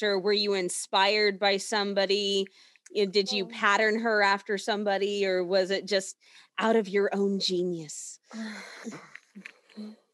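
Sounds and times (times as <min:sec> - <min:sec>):
speech: 0:00.0 - 0:10.0
person sneezing: 0:08.3 - 0:09.2
short vocal sounds: 0:08.3 - 0:10.1.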